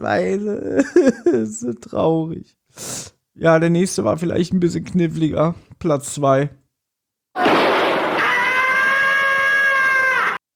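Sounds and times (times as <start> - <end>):
speech: 0.0 - 6.6, 7.4 - 7.6
cartoon cat scream: 7.4 - 10.4.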